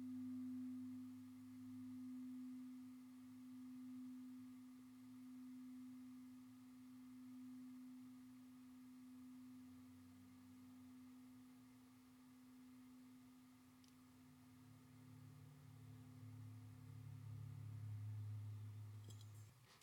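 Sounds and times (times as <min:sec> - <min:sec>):
Tibetan singing bowl ringing: 0:00.0 - 0:11.4
soft low hum: 0:00.0 - 0:19.8.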